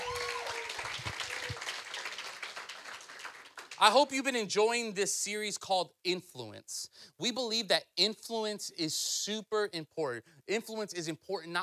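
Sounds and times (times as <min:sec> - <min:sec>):
whoops and cheers: 0:00.0 - 0:01.9
audience applauding: 0:00.0 - 0:03.8
speech: 0:03.8 - 0:11.6.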